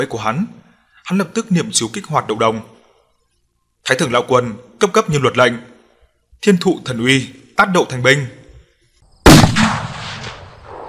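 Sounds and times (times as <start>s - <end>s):
speech: 0.0s - 2.8s, 3.8s - 5.7s, 6.4s - 8.4s
series of explosions from the ground: 9.3s - 10.8s.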